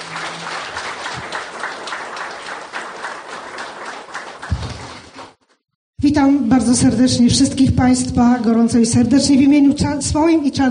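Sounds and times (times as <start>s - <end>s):
audience applause: 0.0s - 5.4s
speech: 6.0s - 10.7s.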